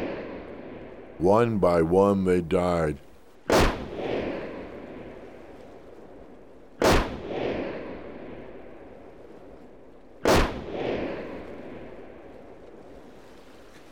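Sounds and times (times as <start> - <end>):
speech: 1.2 - 3.1
loud gunshots with long rumbling echo: 3.5 - 4.5, 6.8 - 8.0, 10.2 - 11.5.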